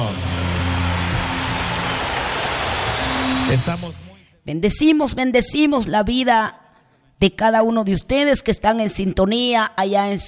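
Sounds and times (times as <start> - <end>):
loud applause from audience: 0.0 - 3.8
speech: 3.5 - 6.6, 7.2 - 10.2.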